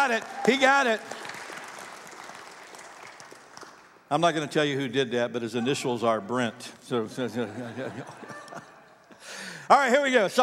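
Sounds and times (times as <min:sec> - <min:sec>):
speech: 0:00.0 - 0:01.2, 0:04.1 - 0:08.6, 0:09.7 - 0:10.4
audience applauding: 0:00.0 - 0:04.0
laughter: 0:07.1 - 0:09.1.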